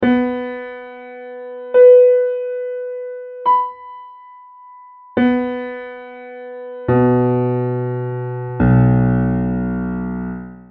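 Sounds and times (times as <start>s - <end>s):
piano: 0.0s - 10.6s.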